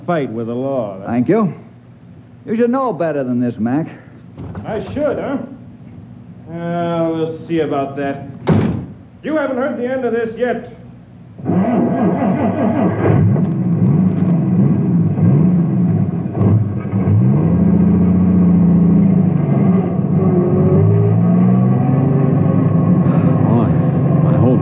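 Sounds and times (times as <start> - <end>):
speech: 0.1 - 1.7, 2.4 - 5.6, 6.5 - 8.6, 9.2 - 10.8
truck engine revving as it drives off: 11.4 - 24.5.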